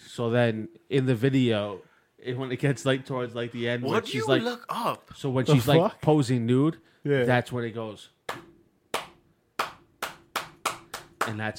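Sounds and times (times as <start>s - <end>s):
speech: 0.2s - 8.4s, 11.3s - 11.5s
slow hand claps: 8.3s - 11.5s.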